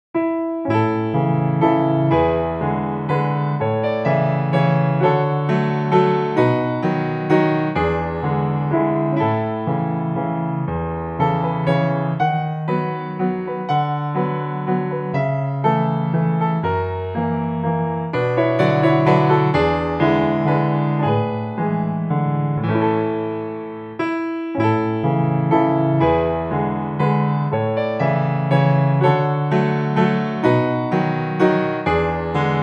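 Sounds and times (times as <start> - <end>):
waltz impromptu: 0.5 - 32.6.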